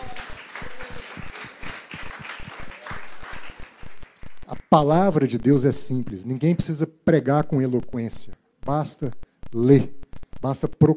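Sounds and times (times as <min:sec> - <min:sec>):
audience applauding: 0:00.0 - 0:05.2
speech: 0:04.7 - 0:10.9.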